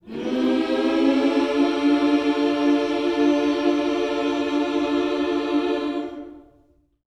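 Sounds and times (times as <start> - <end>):
gospel vocal scoops in a minor key: 0.0 - 6.6.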